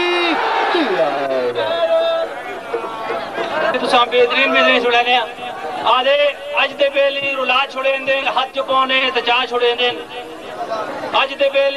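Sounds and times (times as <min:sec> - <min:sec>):
crowd at a shrine fair shouting a religious slogan: 0:00.0 - 0:06.6
loud chatter at a shrine fair: 0:00.0 - 0:11.7
speech: 0:04.0 - 0:11.7.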